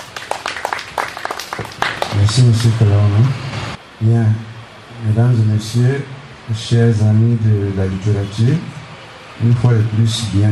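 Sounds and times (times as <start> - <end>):
audience applauding: 0.0 - 2.8
speech: 2.2 - 3.4, 4.0 - 8.7, 9.4 - 10.5.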